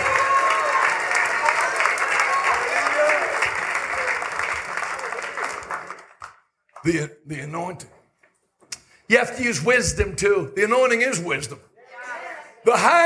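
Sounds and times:
audience clapping hands: 0.0 - 7.0
speech: 6.8 - 8.0, 9.1 - 11.7, 12.6 - 13.0.

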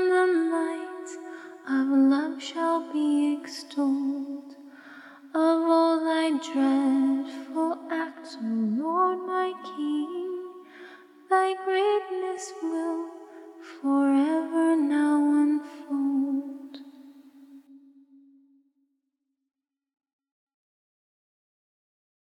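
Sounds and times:
a cappella psalm hymn singing: 0.0 - 4.6, 5.3 - 10.7, 11.3 - 16.9.

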